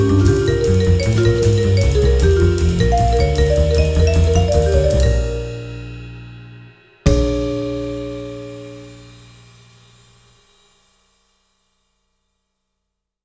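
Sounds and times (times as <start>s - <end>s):
bebop jazz: 0.0s - 10.4s.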